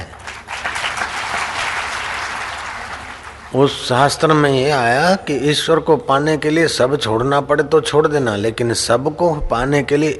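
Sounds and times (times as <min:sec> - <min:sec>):
audience clapping: 0:00.0 - 0:03.9
speech: 0:03.5 - 0:10.1.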